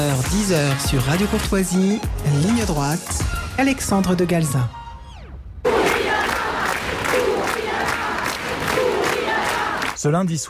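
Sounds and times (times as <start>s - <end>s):
speech: 0.0s - 4.8s, 10.0s - 10.4s
large protest crowd roaring and shouting in anger: 5.7s - 10.0s.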